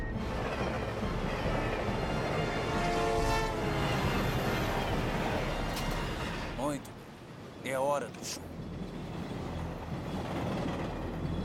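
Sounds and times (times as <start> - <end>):
oncoming train approaching: 0.0 - 11.4
oncoming train horn: 0.2 - 6.6
speech: 7.7 - 8.5.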